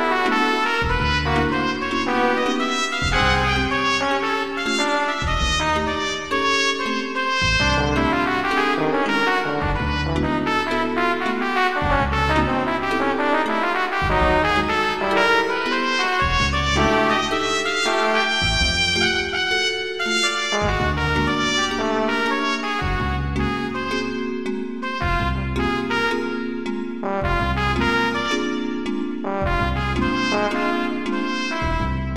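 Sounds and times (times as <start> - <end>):
trumpet jive music: 0.0 - 32.1.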